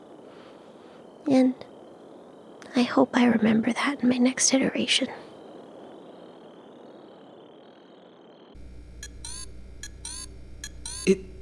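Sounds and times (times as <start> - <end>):
speech: 1.3 - 1.7, 2.8 - 5.3
communicator device beeping: 8.5 - 11.3.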